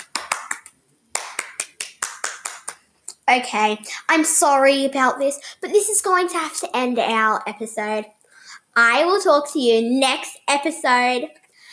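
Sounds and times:
round of applause: 0.0 - 2.8
speech: 3.3 - 8.2, 8.8 - 11.4.

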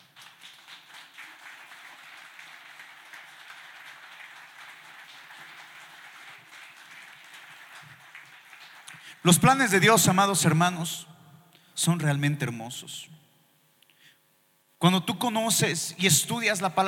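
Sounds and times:
crowd clapping: 0.0 - 9.6
speech: 9.2 - 11.1, 11.8 - 13.2, 14.8 - 16.8.

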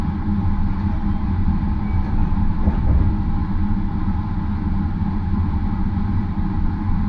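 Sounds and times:
Marine Liner rapid train running from Takamatsu to Okayama: 0.1 - 6.9
knock or jolt: 2.6 - 3.5.

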